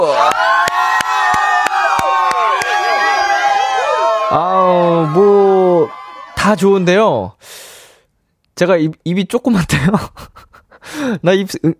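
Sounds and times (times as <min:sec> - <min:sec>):
cheering: 0:00.0 - 0:06.9
applause: 0:00.2 - 0:03.2
speech: 0:06.5 - 0:07.6, 0:08.6 - 0:11.7.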